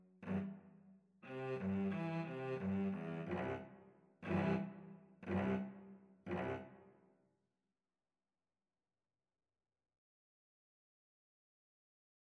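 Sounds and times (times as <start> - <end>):
cello duet: 0.0 - 0.6, 1.2 - 6.8.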